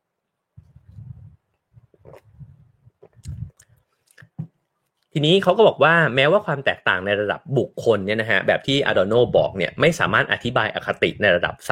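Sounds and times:
person sipping and swallowing water: 0.6s - 4.5s
speech: 5.2s - 11.6s.

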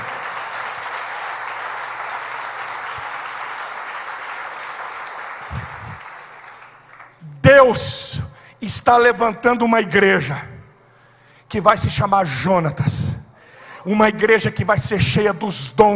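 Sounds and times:
audience applause: 0.0s - 7.2s
speech: 7.6s - 10.5s, 11.5s - 13.1s, 13.8s - 15.9s.

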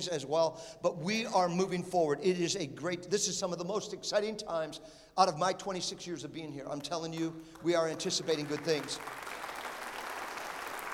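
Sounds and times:
speech: 0.0s - 9.4s
audience applause: 8.1s - 10.9s.

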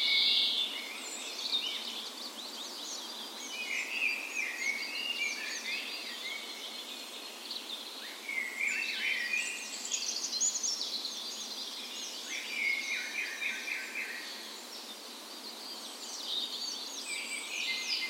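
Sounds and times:
dawn chorus of birds singing: 0.0s - 18.0s.

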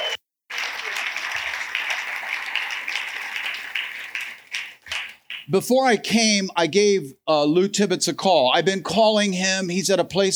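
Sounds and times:
audience applause: 0.0s - 5.5s
speech: 5.5s - 10.3s.

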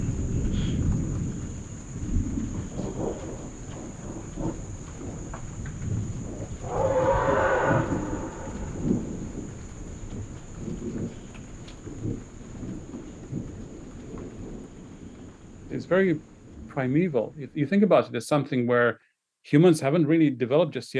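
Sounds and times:
rumbling thunder: 0.0s - 17.4s
rain: 0.0s - 18.4s
elephant trumpeting: 6.6s - 9.4s
speech: 15.8s - 20.9s.

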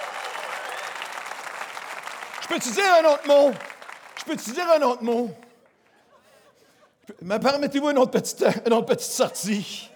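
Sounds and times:
audience applauding: 0.0s - 5.5s
speech: 2.5s - 5.4s, 7.1s - 9.9s.

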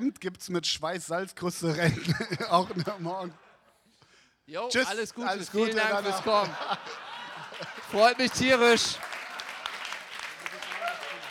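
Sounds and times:
speech: 0.1s - 3.5s, 4.5s - 9.1s
laughter: 1.7s - 3.9s, 4.7s - 11.3s
crowd applauding: 5.3s - 11.3s.

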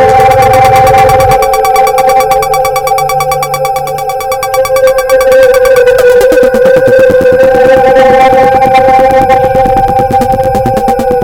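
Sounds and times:
two sustained ringing tones: 0.1s - 7.6s
rapid clicking blips: 0.1s - 11.2s.

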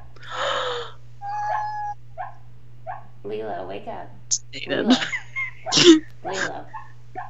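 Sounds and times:
dog whimpering while dreaming: 1.2s - 2.0s
speech: 3.3s - 7.2s.

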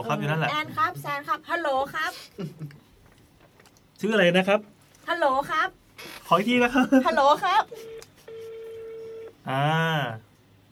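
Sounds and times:
speech: 0.1s - 2.8s, 4.0s - 8.0s, 9.5s - 10.3s
steady telephone tone: 7.8s - 9.3s.

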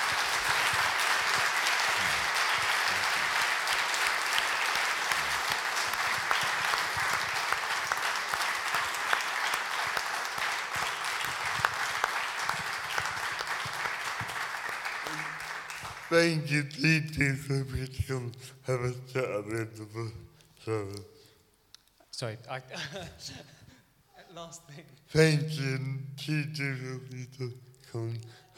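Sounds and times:
audience applause: 0.0s - 19.3s
speech: 16.1s - 21.2s, 22.2s - 23.6s, 24.4s - 28.5s.

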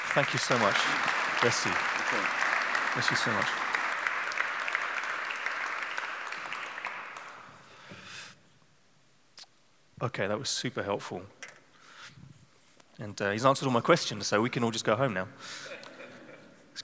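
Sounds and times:
audience applause: 0.0s - 7.5s
speech: 0.2s - 3.6s, 10.0s - 11.4s, 13.0s - 15.9s.

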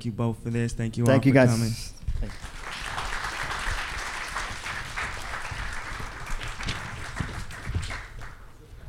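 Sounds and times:
speech: 0.0s - 2.5s
audience applause: 2.1s - 8.4s.

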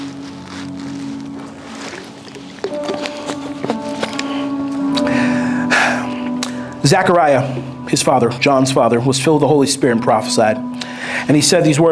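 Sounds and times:
person drinking water: 0.0s - 6.8s
exhaled breath: 4.2s - 6.8s, 10.7s - 11.3s
speech: 6.8s - 11.9s.

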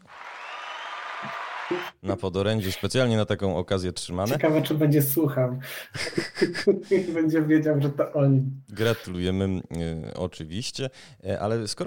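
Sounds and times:
applause sound effect: 0.0s - 1.9s
speech: 1.2s - 11.8s
laughter: 6.0s - 7.2s.

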